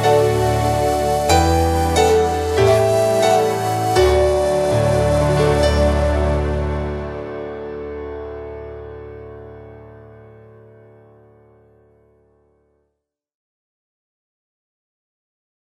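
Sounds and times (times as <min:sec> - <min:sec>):
backing track: 0:00.0 - 0:08.8.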